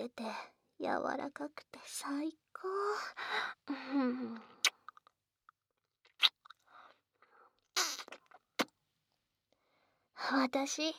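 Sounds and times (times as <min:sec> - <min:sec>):
speech: 0:00.1 - 0:04.6, 0:10.2 - 0:10.9
wet kissing sounds: 0:04.6 - 0:05.0, 0:06.1 - 0:06.6, 0:07.8 - 0:08.8.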